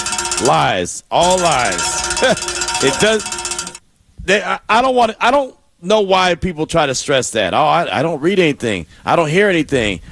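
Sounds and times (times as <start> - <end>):
bell being rung: 0.0 - 3.8
speech: 0.4 - 3.4, 4.2 - 10.1.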